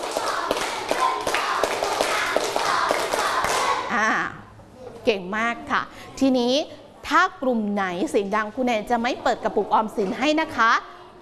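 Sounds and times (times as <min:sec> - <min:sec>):
students clapping a rhythmic clap pattern: 0:00.0 - 0:04.0
speech: 0:05.0 - 0:10.9.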